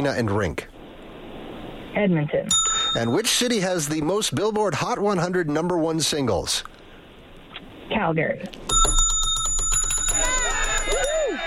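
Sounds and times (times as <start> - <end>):
speech: 0.0 - 0.7, 2.0 - 6.8, 7.9 - 9.0
bright bell ringing rapidly for correct answer: 2.5 - 3.4, 8.7 - 11.4.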